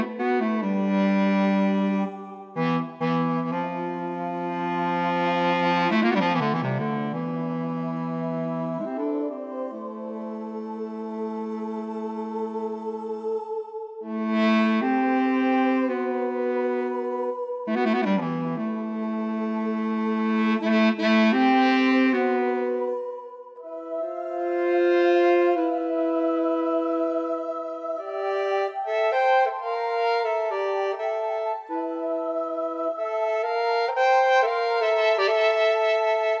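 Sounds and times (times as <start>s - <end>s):
bass clarinet: 0.0s - 11.4s, 14.0s - 36.3s
alto saxophone: 0.0s - 12.4s, 14.0s - 36.3s.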